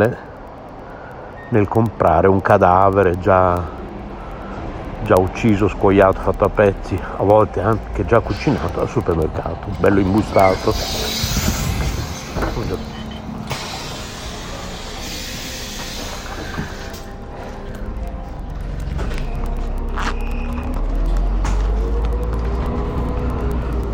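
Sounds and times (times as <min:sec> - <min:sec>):
speech: 0:00.0 - 0:00.3, 0:01.5 - 0:03.8, 0:05.0 - 0:11.6, 0:12.6 - 0:13.0
moving bus engine drone: 0:00.0 - 0:23.9
road rumble inside a moving bus: 0:00.0 - 0:23.9.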